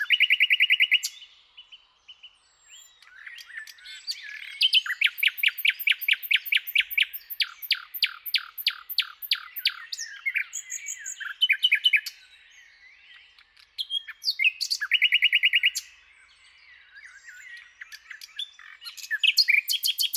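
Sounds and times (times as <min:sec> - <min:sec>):
Common nightingale singing trills and warbling: 0:00.0 - 0:20.1.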